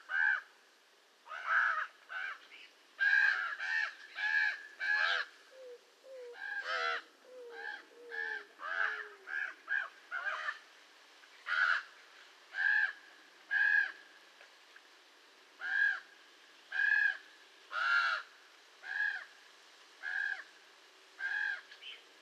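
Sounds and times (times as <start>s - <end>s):
raven calling: 0.0s - 0.5s, 1.2s - 10.7s, 11.4s - 14.0s, 15.6s - 16.1s, 16.7s - 19.4s, 20.0s - 20.5s, 21.2s - 22.0s.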